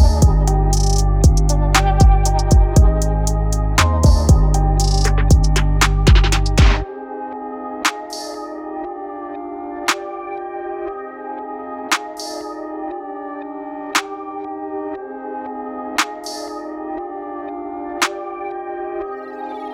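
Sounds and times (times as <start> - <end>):
bass: 0.0 - 6.8.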